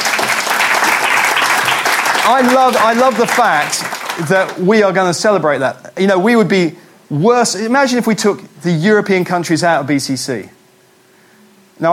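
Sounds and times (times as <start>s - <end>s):
audience clapping: 0.0s - 4.7s
speech: 2.3s - 10.6s, 11.8s - 11.9s.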